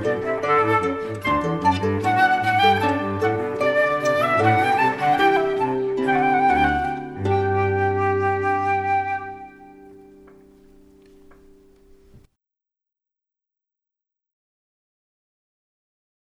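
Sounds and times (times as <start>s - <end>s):
baroque gavotte: 0.0s - 12.3s.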